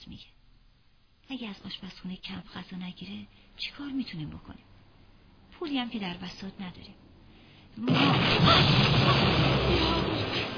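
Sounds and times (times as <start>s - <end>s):
speech: 1.3s - 4.7s, 5.6s - 7.1s, 7.8s - 9.1s
rocket explosion: 7.8s - 10.5s.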